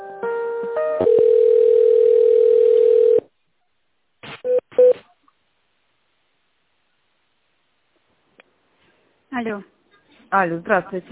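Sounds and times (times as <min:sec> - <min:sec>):
telephone dial tone: 0:01.0 - 0:03.3
speech: 0:09.4 - 0:11.1.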